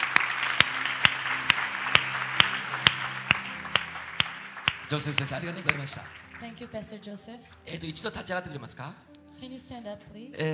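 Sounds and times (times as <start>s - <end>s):
church congregation clapping in praise to God: 0.0s - 7.0s
speech: 4.9s - 10.5s.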